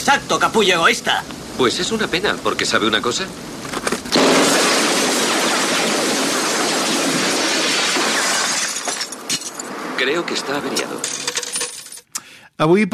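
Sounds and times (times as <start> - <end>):
speech: 0.1 - 3.9, 10.0 - 11.2, 12.6 - 12.9
gunshots: 4.1 - 8.8
telephone booth glass shattering: 4.1 - 9.8, 10.8 - 12.1.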